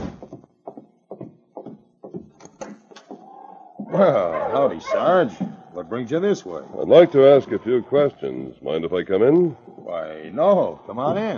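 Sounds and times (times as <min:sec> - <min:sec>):
knocking on a wooden cabin door: 0:00.2 - 0:03.2
speech: 0:03.9 - 0:11.3.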